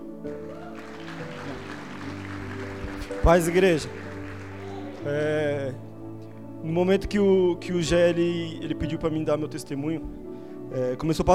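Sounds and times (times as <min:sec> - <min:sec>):
audience applause: 0:00.3 - 0:05.4
speech: 0:03.1 - 0:04.0, 0:05.0 - 0:05.8, 0:06.6 - 0:11.3.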